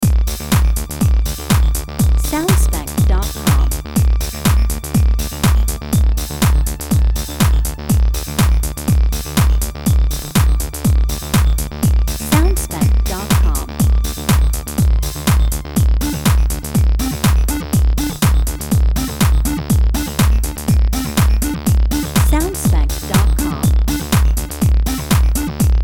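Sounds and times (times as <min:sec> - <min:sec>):
house clubbing loop: 0:00.0 - 0:25.8.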